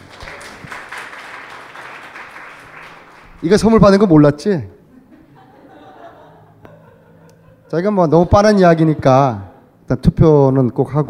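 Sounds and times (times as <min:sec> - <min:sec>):
crowd applauding: 0:00.0 - 0:03.9
speech: 0:03.4 - 0:04.8, 0:07.7 - 0:11.0
laughter: 0:04.8 - 0:09.5.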